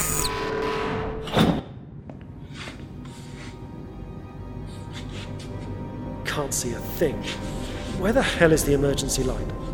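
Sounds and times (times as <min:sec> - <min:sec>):
mechanical hum: 0:00.0 - 0:01.2
speech: 0:06.5 - 0:09.6.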